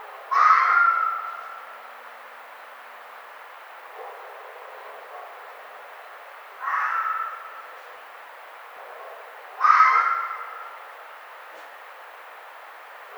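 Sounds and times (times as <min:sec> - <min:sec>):
red fox rasping scream: 0:00.3 - 0:01.5, 0:06.6 - 0:07.7, 0:09.6 - 0:10.8.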